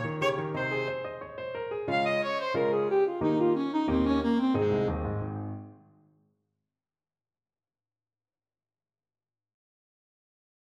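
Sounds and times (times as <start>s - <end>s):
alto saxophone playing a classical sonatina: 0.0s - 5.8s.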